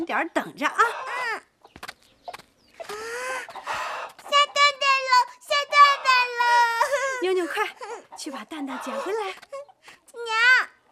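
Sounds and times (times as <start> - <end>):
speech: 0.0 - 1.1, 7.3 - 9.6
hen clucking: 0.0 - 9.9.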